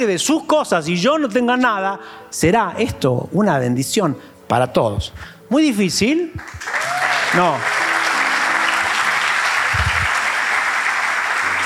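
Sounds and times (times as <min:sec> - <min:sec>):
speech: 0:00.0 - 0:07.8
audience applauding: 0:06.4 - 0:11.6.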